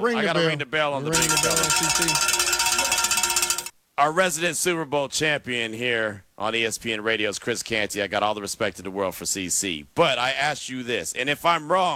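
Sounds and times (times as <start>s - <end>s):
speech: 0.0s - 2.4s, 4.0s - 11.9s
bell being rung: 1.1s - 3.7s.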